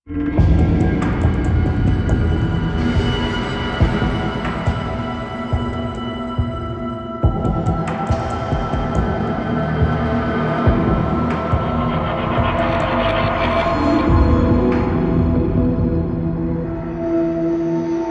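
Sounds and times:
hub intro music cue: 0:00.1 - 0:18.0.

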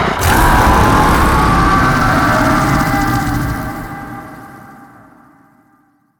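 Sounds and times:
howling: 0:00.1 - 0:05.1.

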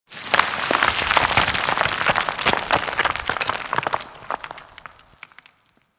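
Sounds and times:
coring rock pouring: 0:00.0 - 0:05.9.

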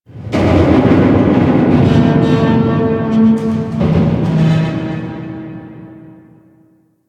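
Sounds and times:
metal groaning: 0:00.1 - 0:06.5.

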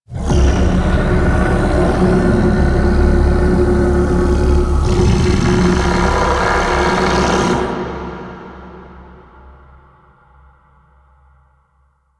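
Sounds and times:
vocals: 0:00.0 - 0:10.5.

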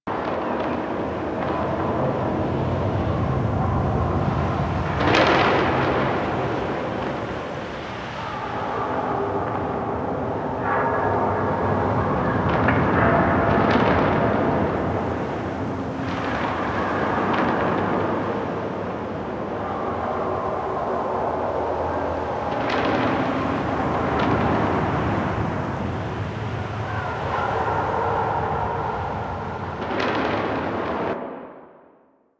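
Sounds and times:
fortress exterior ambience: 0:00.0 - 0:32.0.

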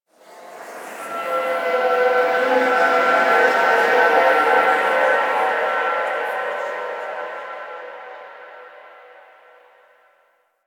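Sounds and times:
echoes in an amphitheatre: 0:00.5 - 0:08.7.

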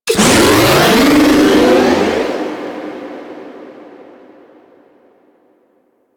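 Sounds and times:
rematerialize sound effect: 0:00.9 - 0:05.4.

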